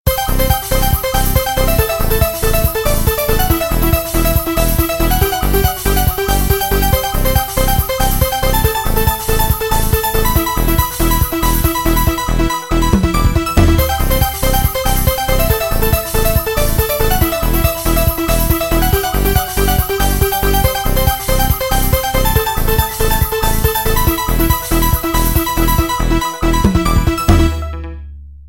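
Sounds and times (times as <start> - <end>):
trance music: 0.1 - 28.3.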